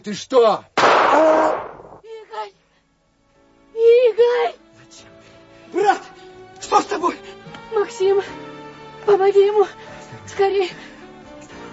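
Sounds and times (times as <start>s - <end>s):
speech: 0.0s - 1.5s, 5.7s - 6.1s, 6.7s - 10.8s
gunshot: 0.8s - 2.0s.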